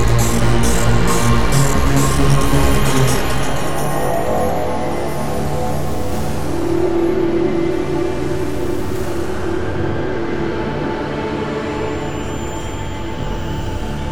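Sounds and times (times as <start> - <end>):
spooky ambience: 0.0 - 14.1.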